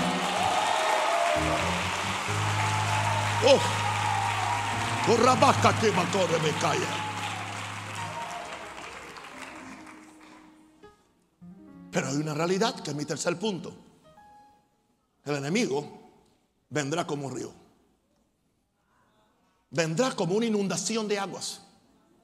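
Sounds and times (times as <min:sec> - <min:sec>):
audience applause: 0:00.0 - 0:10.6
speech: 0:03.4 - 0:03.8, 0:05.0 - 0:07.0, 0:12.0 - 0:13.9, 0:15.2 - 0:16.0, 0:16.7 - 0:17.6, 0:19.7 - 0:21.6.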